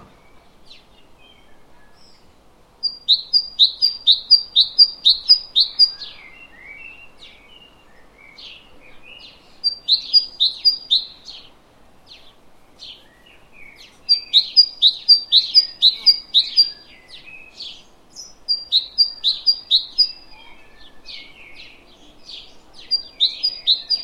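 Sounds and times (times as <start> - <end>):
faint hiss: 0.0 - 24.0
other birds chirping and whistling: 0.0 - 24.0
great tit song: 2.8 - 6.2, 9.2 - 11.5, 13.7 - 24.0.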